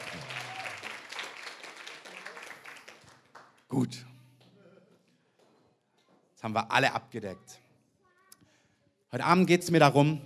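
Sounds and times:
audience applause: 0:00.0 - 0:03.7
speech: 0:03.7 - 0:04.1, 0:06.4 - 0:07.6, 0:09.1 - 0:10.2.

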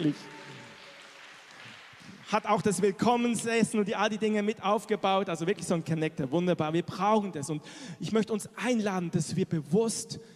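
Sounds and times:
speech: 0:00.0 - 0:00.4, 0:02.3 - 0:10.3
applause: 0:00.0 - 0:03.6.

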